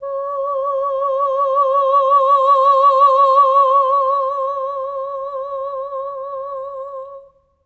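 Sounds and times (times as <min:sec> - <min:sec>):
soprano voice singing oh: 0:00.0 - 0:07.4.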